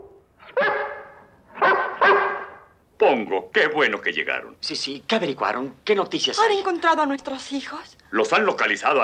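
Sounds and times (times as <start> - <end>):
Great Dane barking in a park: 0.4 - 2.7
speech: 3.1 - 8.9.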